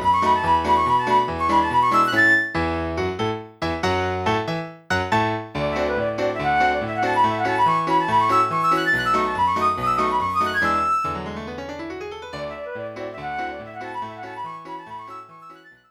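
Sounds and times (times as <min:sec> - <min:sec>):
flute: 0:00.0 - 0:02.7, 0:05.6 - 0:11.3, 0:12.4 - 0:15.8
piano: 0:00.0 - 0:15.8.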